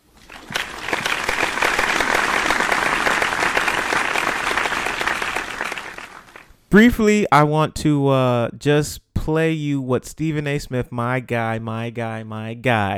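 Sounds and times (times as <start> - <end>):
round of applause: 0.0 - 6.6
speech: 6.7 - 12.9.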